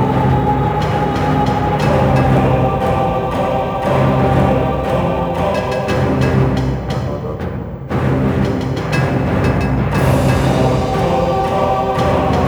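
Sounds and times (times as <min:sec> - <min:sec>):
music: 0:00.0 - 0:12.4.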